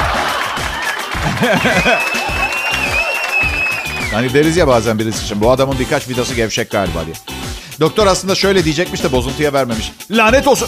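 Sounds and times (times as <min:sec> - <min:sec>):
laughter: 0:00.0 - 0:03.5
audience applause: 0:00.0 - 0:04.2
speech: 0:01.2 - 0:02.4, 0:04.1 - 0:10.6.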